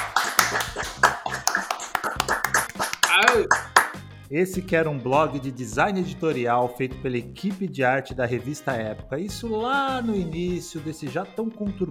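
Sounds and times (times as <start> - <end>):
people clapping: 0.0 - 4.0
cheerful voices: 0.2 - 3.8
person whooping: 2.0 - 3.7
speech: 4.3 - 11.8.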